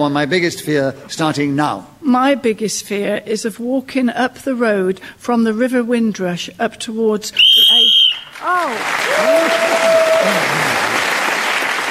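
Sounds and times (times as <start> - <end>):
speech: 0.0 - 11.1
whistle ending the round: 7.4 - 8.4.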